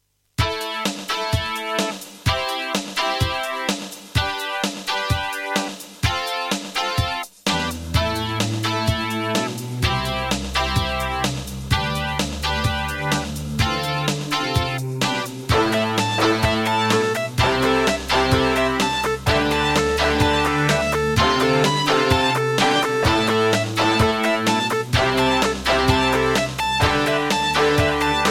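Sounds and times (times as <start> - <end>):
Kawai GMega: 0.4 - 28.3.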